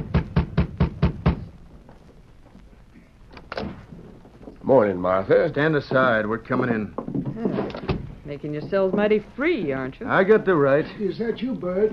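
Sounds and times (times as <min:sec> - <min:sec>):
sheriff knocking on a door: 0:00.0 - 0:01.5, 0:07.0 - 0:09.2
speech: 0:04.7 - 0:07.0, 0:08.3 - 0:11.9.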